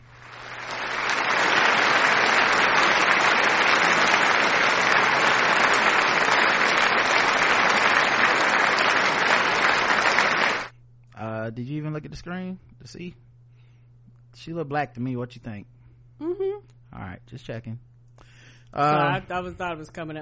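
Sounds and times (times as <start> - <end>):
crowd applause sound effect: 0.0 - 10.7
speech: 12.0 - 13.3, 14.4 - 17.9, 18.7 - 20.1.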